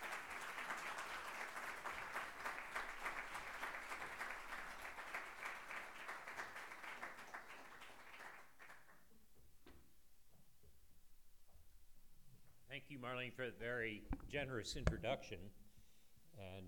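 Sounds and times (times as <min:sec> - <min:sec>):
audience applause at the Harvard Club: 0:00.0 - 0:09.0
speech: 0:12.9 - 0:15.6.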